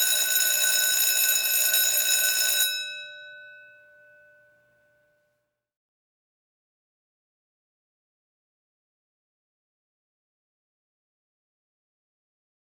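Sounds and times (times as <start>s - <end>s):
bell ringing: 0.1s - 5.1s.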